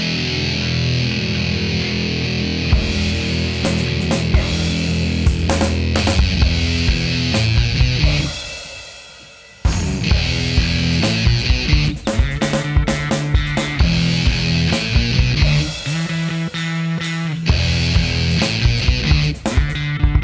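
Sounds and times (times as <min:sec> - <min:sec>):
effects pedal test: 0:00.0 - 0:20.2.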